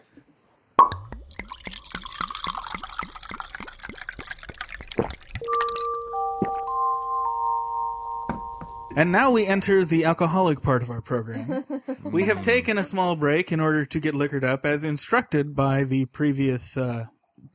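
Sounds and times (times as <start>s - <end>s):
wine glugging out of a bottle into a glass: 0.8s - 7.2s
glass ringing tone: 5.4s - 9.9s
speech: 9.0s - 17.5s
laughter: 11.3s - 12.7s.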